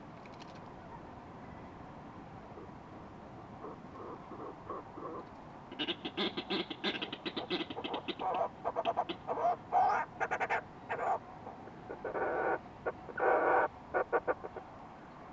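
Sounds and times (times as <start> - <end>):
low background noise: 0.0 - 15.3
fulmar prion croaking calls: 3.6 - 14.7.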